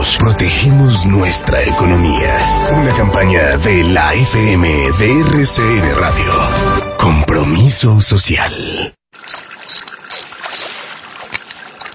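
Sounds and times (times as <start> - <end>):
speech: 0.0 - 9.0
water splashing and trickling during a repair on a household water meter: 9.1 - 11.9.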